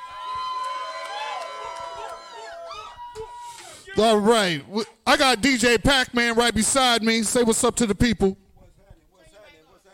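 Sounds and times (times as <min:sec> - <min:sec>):
crowd cheering and shouting: 0:00.0 - 0:04.0
speech: 0:04.0 - 0:08.4.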